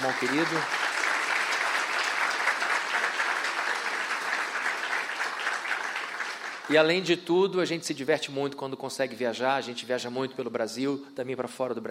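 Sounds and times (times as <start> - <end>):
speech: 0.0 - 0.9, 6.7 - 11.9
warm applause from audience: 0.0 - 7.1.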